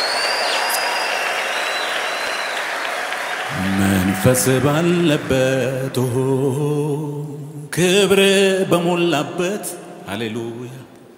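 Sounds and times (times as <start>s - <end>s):
applause and clapping for God at a worship service: 0.0s - 6.6s
speech: 3.5s - 10.9s.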